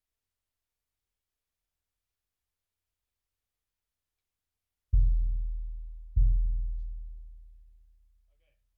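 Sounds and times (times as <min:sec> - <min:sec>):
bass drum: 0:05.0 - 0:07.9.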